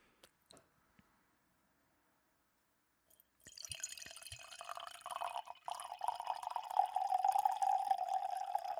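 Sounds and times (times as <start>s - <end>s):
red Gamay wine pouring: 3.4s - 8.7s.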